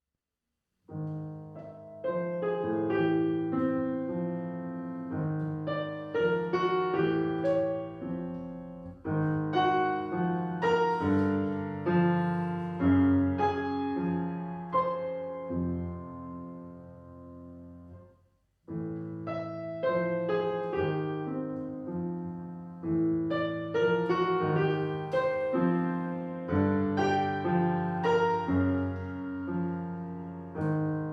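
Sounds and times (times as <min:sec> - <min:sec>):
piano: 0:00.7 - 0:31.1.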